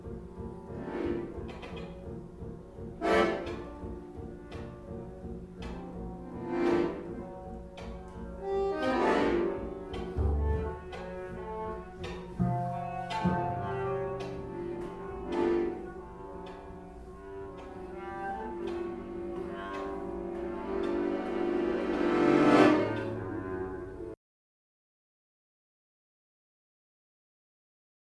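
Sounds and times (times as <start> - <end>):
string suite music: 0.0 - 24.2.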